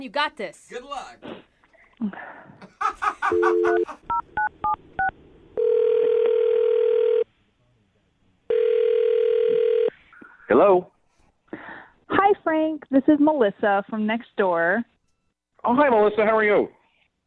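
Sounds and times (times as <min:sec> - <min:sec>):
speech: 0:00.0 - 0:01.4, 0:02.0 - 0:05.2, 0:10.5 - 0:10.9, 0:11.5 - 0:14.9, 0:15.6 - 0:16.8
laughter: 0:02.6 - 0:04.1
dial tone: 0:03.3 - 0:03.8, 0:04.6 - 0:07.3, 0:08.5 - 0:09.9.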